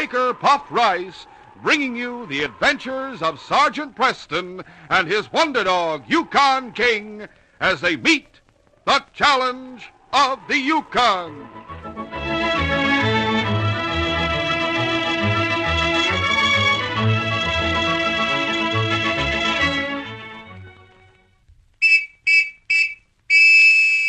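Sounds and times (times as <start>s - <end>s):
orchestral music: 0.0s - 7.2s, 9.7s - 21.3s
speech: 0.0s - 11.8s
shrill police whistle blowing hurry-up signal: 21.8s - 24.0s.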